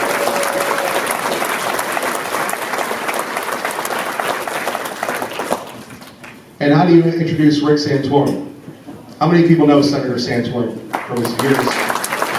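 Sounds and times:
audience applause: 0:00.0 - 0:06.4, 0:10.9 - 0:12.3
speech: 0:06.6 - 0:08.5, 0:09.2 - 0:11.8.

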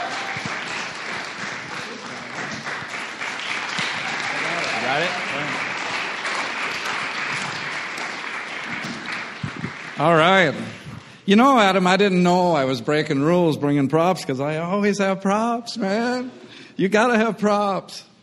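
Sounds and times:
audience applause: 0:00.0 - 0:11.2
speech: 0:04.9 - 0:05.7, 0:10.0 - 0:18.1.

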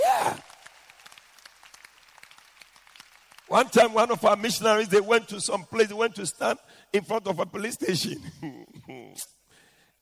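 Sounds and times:
audience clapping for missionaries: 0:00.0 - 0:04.8
speech: 0:03.5 - 0:09.4.

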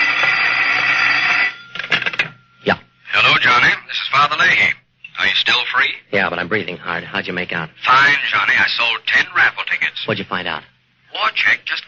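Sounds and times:
telephone ringing: 0:00.0 - 0:04.6
speech: 0:06.1 - 0:11.8.

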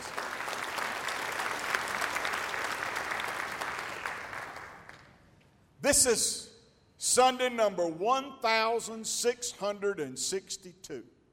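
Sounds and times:
audience applause: 0:00.0 - 0:05.1
speech: 0:05.8 - 0:11.2.

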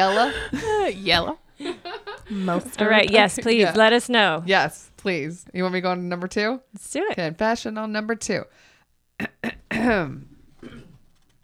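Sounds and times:
throat clearing: 0:00.0 - 0:01.4, 0:09.2 - 0:11.2
laughter: 0:00.0 - 0:04.3
speech: 0:00.0 - 0:10.8.

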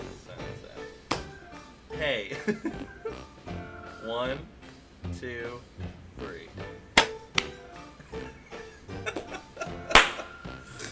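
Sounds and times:
hand claps for audio sync: 0:01.0 - 0:01.4, 0:06.9 - 0:07.7, 0:09.1 - 0:10.8
speech: 0:02.0 - 0:03.0, 0:04.1 - 0:06.8
laughter: 0:02.3 - 0:03.3, 0:08.0 - 0:10.8.

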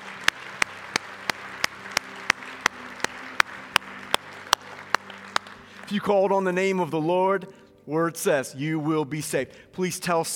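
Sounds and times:
crowd applauding: 0:00.0 - 0:06.6
loud rhythmic clap: 0:00.0 - 0:06.6
speech: 0:05.9 - 0:10.3.

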